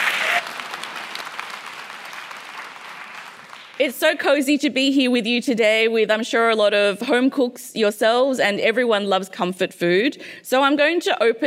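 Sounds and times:
audience applause: 0.0 - 3.9
speech: 3.8 - 11.4.

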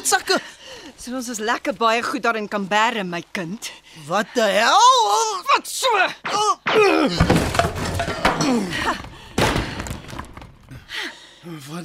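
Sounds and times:
speech: 0.0 - 7.8, 8.4 - 9.1, 11.4 - 11.8
person falling onto chairs: 6.7 - 10.9.

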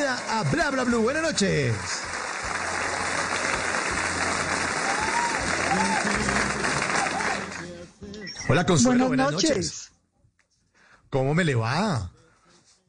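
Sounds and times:
applause: 0.0 - 7.8
speech: 0.3 - 2.2, 8.5 - 9.9, 11.1 - 12.2.

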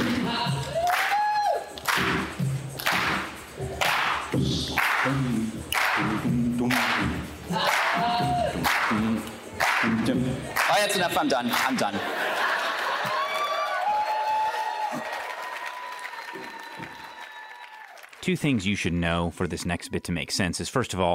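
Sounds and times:
audience clapping: 0.0 - 19.0
whoops and shouts: 0.3 - 1.8, 12.9 - 18.0
laughter: 10.9 - 13.8
speech: 11.2 - 12.2, 18.3 - 21.1.

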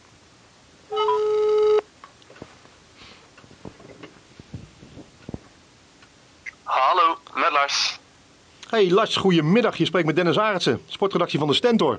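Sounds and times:
phone ringback tone on outgoing call: 0.9 - 1.9
speech: 7.5 - 8.0, 8.7 - 11.9.

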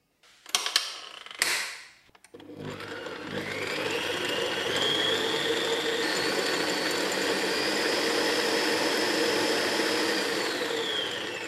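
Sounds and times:
stand mixer kneading dough: 2.4 - 11.4.

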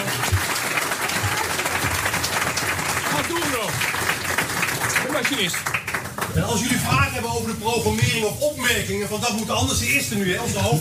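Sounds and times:
audience applause: 0.0 - 6.9
speech: 5.3 - 5.8, 6.4 - 10.8.

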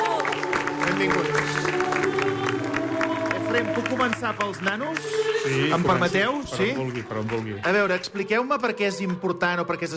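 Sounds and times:
applause: 0.0 - 8.2
speech: 1.0 - 1.8, 3.5 - 9.9.

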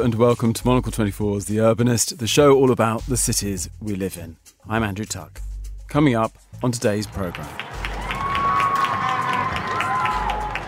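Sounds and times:
speech: 0.0 - 7.7
people clapping from balconies and windows: 6.8 - 10.6.

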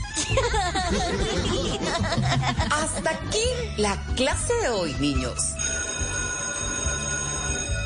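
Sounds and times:
laughter: 0.1 - 3.3
speech: 2.0 - 5.5
school bell ringing: 5.6 - 7.8.

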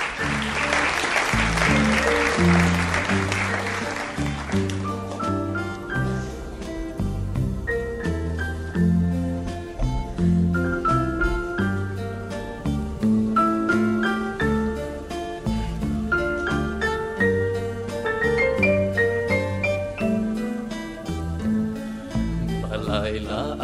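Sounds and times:
crowd applauding: 0.0 - 5.8
band playing: 0.0 - 23.5.

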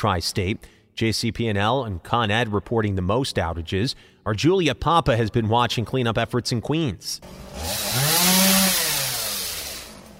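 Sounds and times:
speech: 0.0 - 8.4
buzzsaws cutting storm-felled trees: 7.2 - 10.1.

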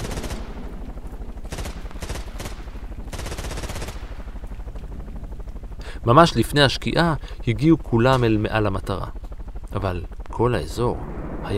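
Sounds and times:
machine gun fire: 0.0 - 0.6, 1.5 - 4.0
speech: 6.0 - 11.5.

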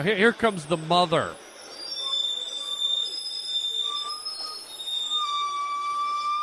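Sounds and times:
speech: 0.0 - 1.5
trucks squealing downhill: 0.0 - 6.4.

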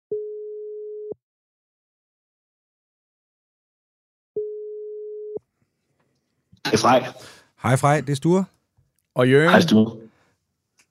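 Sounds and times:
outgoing phone call ringback tone: 4.4 - 5.4
speech: 6.6 - 8.6, 9.2 - 10.0.

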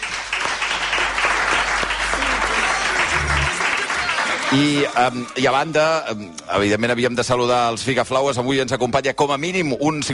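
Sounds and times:
audience applause: 0.0 - 5.4
speech: 4.5 - 10.1.

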